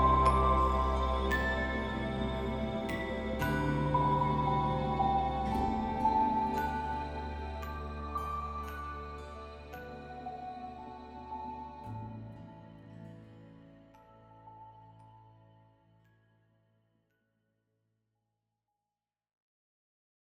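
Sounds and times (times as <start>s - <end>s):
healing music: 0.0s - 16.2s.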